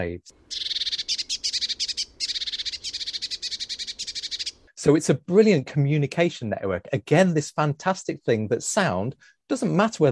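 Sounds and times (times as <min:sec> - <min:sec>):
speech: 0:00.0 - 0:00.7, 0:04.8 - 0:10.1
blue tit and great tit alarm calls: 0:00.4 - 0:04.7.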